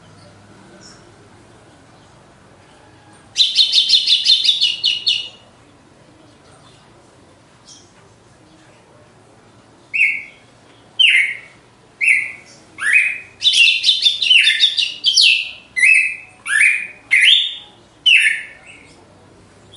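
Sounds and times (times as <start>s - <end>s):
Red-cowled cardinal whistling: 3.4s - 5.4s, 9.9s - 10.4s, 11.0s - 18.6s.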